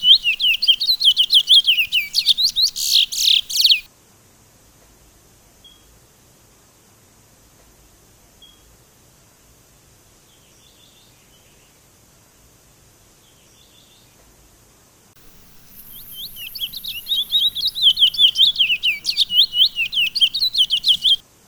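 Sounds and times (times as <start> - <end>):
Sunda laughingthrush song of quick high-pitched slurred chirps: 0.0 - 3.9, 15.2 - 21.2.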